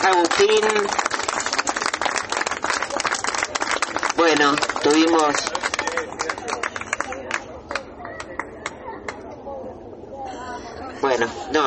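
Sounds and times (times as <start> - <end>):
audience applause for a comrade: 0.0 - 8.5
speech: 0.3 - 1.2, 4.3 - 5.6, 11.2 - 11.6.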